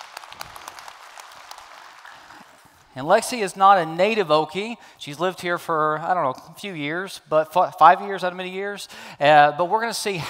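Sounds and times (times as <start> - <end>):
audience round of applause: 0.0 - 2.7
speech: 3.0 - 10.2.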